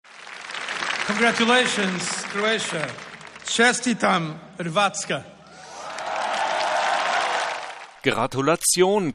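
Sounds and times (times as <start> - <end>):
audience cheering and applauding Croatia's accession to the EU: 0.0 - 4.0, 5.5 - 8.0
speech: 1.1 - 5.4, 8.0 - 9.1.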